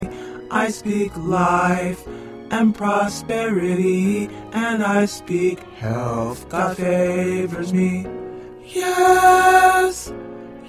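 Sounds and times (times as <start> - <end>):
tenor singing: 0.0 - 10.1.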